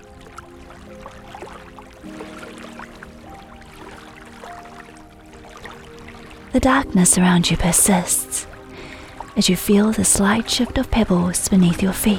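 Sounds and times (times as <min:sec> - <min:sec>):
waves gently lapping against large lake shore: 0:00.0 - 0:12.1
speech: 0:06.5 - 0:08.5, 0:09.4 - 0:12.1.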